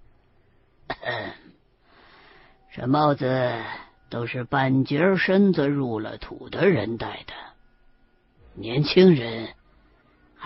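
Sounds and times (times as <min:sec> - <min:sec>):
old man's soft raspy cough: 0:00.8 - 0:01.6
speech: 0:02.8 - 0:07.4, 0:08.6 - 0:09.6.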